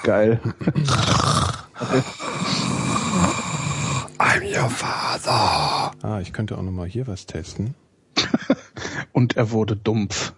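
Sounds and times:
speech: 0.0s - 3.4s, 4.4s - 7.8s, 9.2s - 10.3s
heavy raspy breathing: 0.8s - 6.0s.

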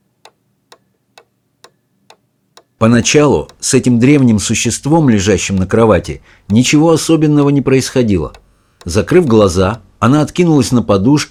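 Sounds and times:
clock ticking: 0.0s - 10.7s
speech: 2.8s - 11.3s.

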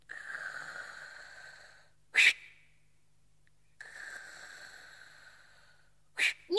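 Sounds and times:
patient breathing heavily: 0.0s - 2.0s, 3.8s - 6.4s.

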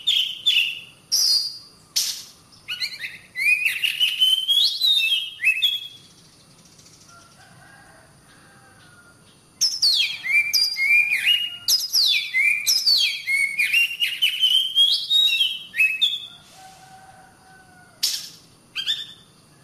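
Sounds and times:
Oriental magpie-robin singing whistled and scratchy notes: 0.0s - 7.0s, 9.6s - 16.3s, 18.0s - 19.3s.

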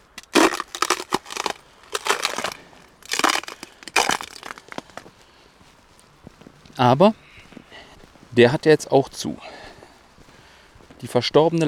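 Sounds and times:
ice crunching: 0.0s - 5.4s
speech: 6.8s - 7.2s, 8.4s - 9.5s, 11.0s - 11.6s.

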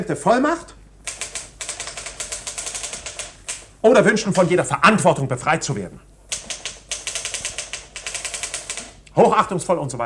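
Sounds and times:
speech: 0.0s - 0.7s, 3.8s - 6.1s, 9.2s - 10.0s
typewriter clattering as a dictated letter is typed: 1.1s - 3.6s, 6.3s - 9.0s.

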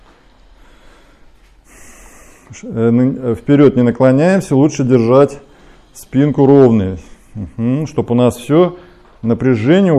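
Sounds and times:
steady hiss: 0.0s - 9.9s
heavy forceful breathing during heel-to-toe rolling leg exercise: 0.3s - 2.7s, 4.8s - 7.6s, 8.7s - 9.2s
speech: 2.5s - 9.9s.

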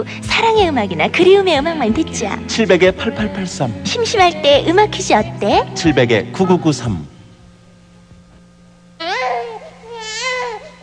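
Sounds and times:
speech: 0.0s - 7.1s
newborn baby crying: 9.0s - 10.8s.

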